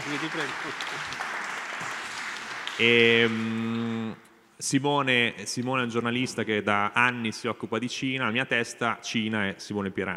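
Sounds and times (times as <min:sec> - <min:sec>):
audience applause: 0:00.0 - 0:03.5
speech: 0:00.1 - 0:02.0, 0:02.8 - 0:10.1.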